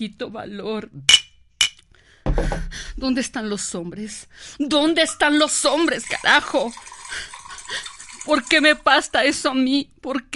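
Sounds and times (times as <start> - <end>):
speech: 0.0 - 1.2, 2.4 - 10.3
glass clinks: 1.1 - 1.8
drink being poured into the glass: 5.1 - 8.9.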